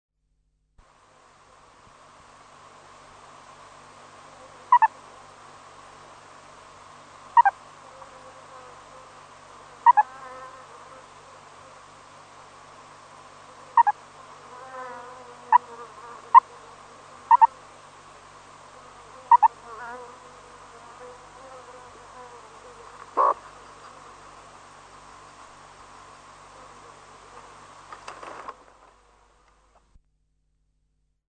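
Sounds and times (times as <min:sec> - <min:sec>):
meerkat calling: 0:04.7 - 0:04.9, 0:07.4 - 0:07.6, 0:09.8 - 0:10.1, 0:13.7 - 0:14.0, 0:17.3 - 0:17.5, 0:19.3 - 0:19.6, 0:23.2 - 0:23.4.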